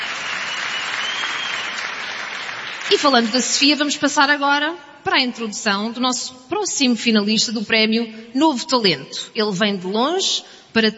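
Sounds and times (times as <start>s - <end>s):
audience applause for a new-talent award finalist singer: 0.0s - 3.4s
speech: 2.9s - 10.9s.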